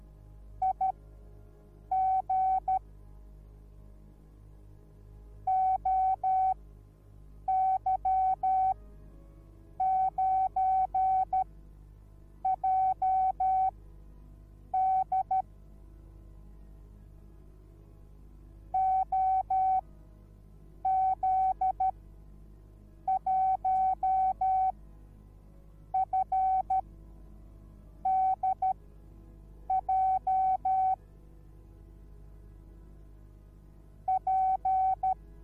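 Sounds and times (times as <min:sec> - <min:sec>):
morse code beeps: 0:00.6 - 0:01.0, 0:01.9 - 0:02.8, 0:05.5 - 0:06.6, 0:07.5 - 0:08.8, 0:09.8 - 0:11.4, 0:12.4 - 0:13.7, 0:14.8 - 0:15.4, 0:18.8 - 0:19.8, 0:20.8 - 0:21.9, 0:23.1 - 0:24.7, 0:26.0 - 0:26.8, 0:28.0 - 0:28.8, 0:29.7 - 0:31.0, 0:34.1 - 0:35.2.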